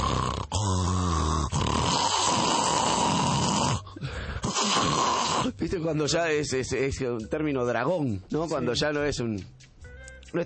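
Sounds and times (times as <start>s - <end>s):
voice imitating loud snoring: 0.0s - 5.6s
speech: 5.6s - 9.6s.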